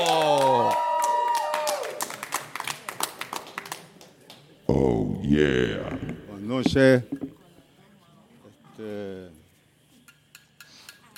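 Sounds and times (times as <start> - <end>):
audience applause: 0.0 - 3.8
speech: 5.3 - 7.2.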